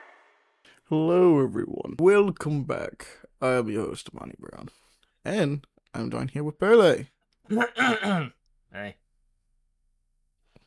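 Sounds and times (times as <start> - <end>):
speech: 0.9 - 9.0
person clearing throat: 7.5 - 8.4.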